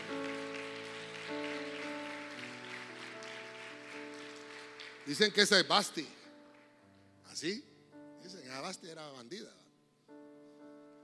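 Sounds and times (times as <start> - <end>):
audience clapping: 0.0 - 6.8
speech: 5.0 - 6.2, 7.4 - 7.7, 8.3 - 9.6.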